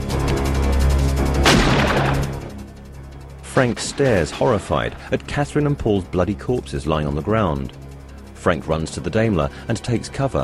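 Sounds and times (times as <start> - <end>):
dense sustained low rumble: 0.0 - 10.4
gunfire from pistols and a shotgun in a shootout near cars: 1.4 - 2.5
speech: 3.6 - 7.8, 8.4 - 10.4.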